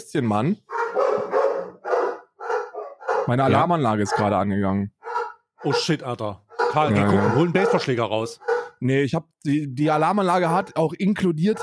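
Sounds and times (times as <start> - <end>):
speech: 0.0 - 0.8, 3.3 - 5.0, 5.6 - 11.6
dog barking: 0.7 - 4.4, 5.0 - 8.8, 10.5 - 10.8, 11.5 - 11.6.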